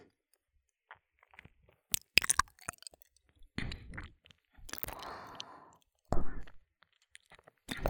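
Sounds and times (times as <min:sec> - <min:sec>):
gentle biting and ear licking ASMR: 0:01.9 - 0:03.0, 0:04.0 - 0:05.6, 0:06.9 - 0:07.8.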